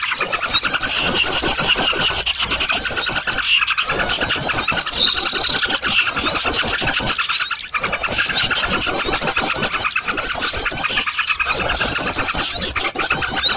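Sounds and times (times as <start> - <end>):
bird chorus: 0.0 - 13.5.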